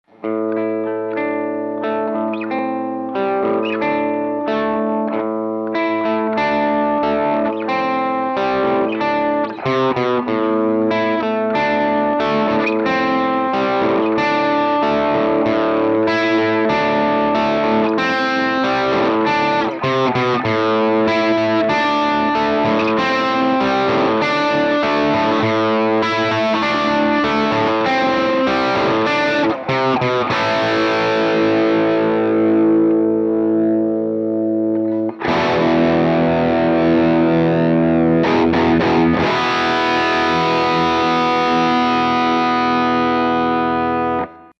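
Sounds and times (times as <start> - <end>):
electric guitar through a plexi amp: 0.0 - 44.5.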